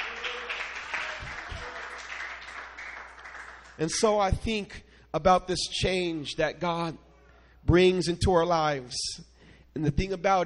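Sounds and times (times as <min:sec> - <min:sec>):
audience clapping hands: 0:00.0 - 0:03.9
speech: 0:03.8 - 0:07.0, 0:07.6 - 0:10.4.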